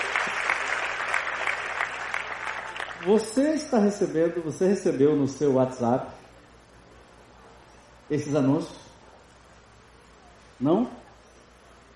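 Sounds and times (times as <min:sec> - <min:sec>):
applause: 0:00.0 - 0:03.6
speech: 0:03.0 - 0:06.2, 0:08.1 - 0:08.8, 0:10.6 - 0:11.0.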